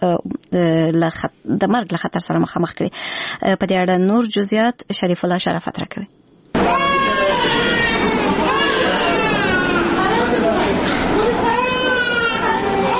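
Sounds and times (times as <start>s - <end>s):
speech: 0.0s - 6.2s
adult chatter: 6.6s - 12.9s
ill infants crying in the women's ward of Tarinkot provincial hospital: 6.6s - 12.9s.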